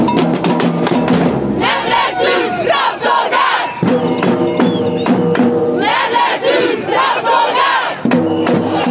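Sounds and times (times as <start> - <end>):
cowbell clanging: 0.0 - 1.4, 3.8 - 5.0
crowd of protesters chanting rhythmically in Hungary: 1.5 - 4.1, 5.6 - 8.9.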